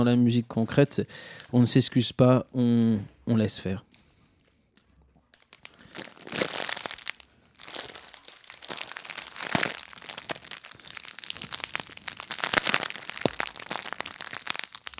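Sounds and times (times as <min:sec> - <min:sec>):
speech: 0:00.0 - 0:03.9
crisp packet crinkling: 0:05.3 - 0:14.9.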